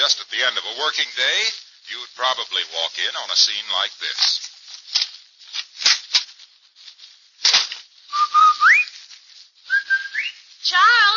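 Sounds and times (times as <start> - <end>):
clattering rustling noise: 0.0 - 11.1
speech: 0.1 - 4.5
person whistling a homecoming signal tune: 8.1 - 8.9, 9.7 - 10.4.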